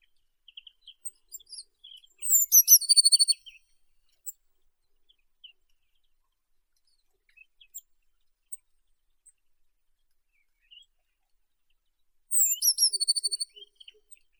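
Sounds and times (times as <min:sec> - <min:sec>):
blue tit Cyanistes caeruleus: 0:00.6 - 0:03.6, 0:12.3 - 0:14.2.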